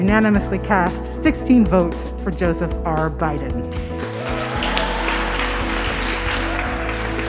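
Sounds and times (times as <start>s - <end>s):
speech: 0.1s - 4.0s
applause from Michigan's electors after casting electoral college votes: 3.7s - 7.2s.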